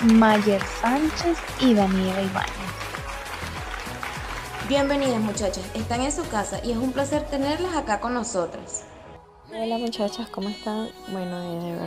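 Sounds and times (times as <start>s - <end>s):
speech: 0.0s - 2.8s, 4.7s - 8.9s, 9.5s - 11.8s
applause: 0.0s - 7.2s.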